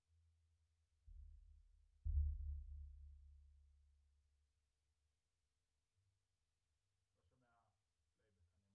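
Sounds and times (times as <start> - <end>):
sub bass: 2.0 - 3.3.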